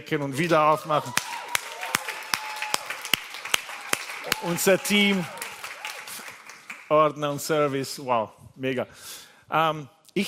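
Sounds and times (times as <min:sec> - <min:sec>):
speech: 0:00.0 - 0:01.4, 0:04.4 - 0:05.4, 0:06.9 - 0:10.2
audience clapping in a steady rhythm: 0:00.1 - 0:08.0.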